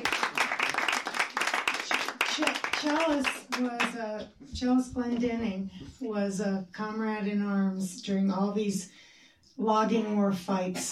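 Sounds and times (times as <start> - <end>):
audience clapping: 0.0 - 4.0
speech: 2.8 - 9.0, 9.6 - 10.9.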